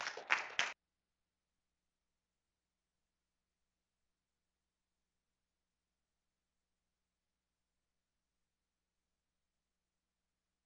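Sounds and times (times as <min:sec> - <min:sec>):
small group applauding: 0:00.0 - 0:00.8.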